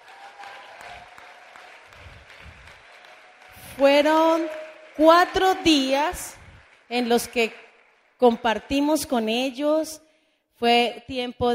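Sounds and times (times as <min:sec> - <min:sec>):
audience applause: 0:00.0 - 0:08.2
speech: 0:03.8 - 0:07.6, 0:08.2 - 0:10.0, 0:10.6 - 0:11.5.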